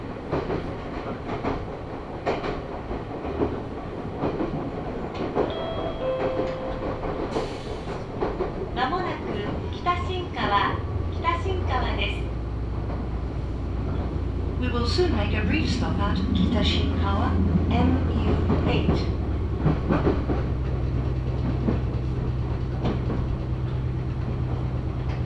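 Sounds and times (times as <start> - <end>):
Meitetsu Mikawa Line train rumble: 0.0 - 25.2
tonal chimes: 5.5 - 7.4
people talking: 8.8 - 12.3, 14.6 - 19.2.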